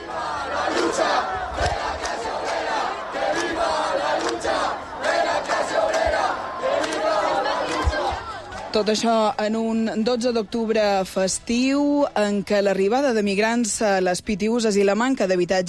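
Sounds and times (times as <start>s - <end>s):
protesters shouting from the camp: 0.0s - 9.2s
speech: 8.8s - 15.6s.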